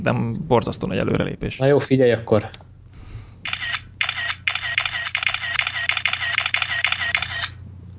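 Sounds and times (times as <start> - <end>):
speech: 0.0 - 2.7
phone camera burst shutter clicks: 3.5 - 7.6.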